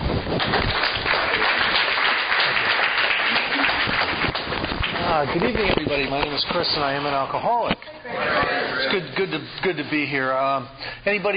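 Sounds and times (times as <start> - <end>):
applause welcoming a speaker at a recovery group meeting: 0.3 - 5.6
speech: 5.2 - 11.3.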